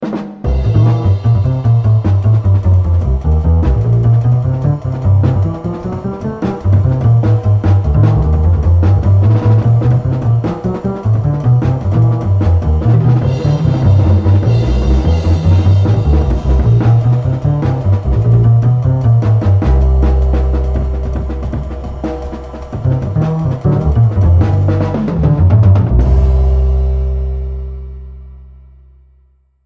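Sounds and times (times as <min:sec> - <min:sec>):
drums: 0:00.0 - 0:28.5.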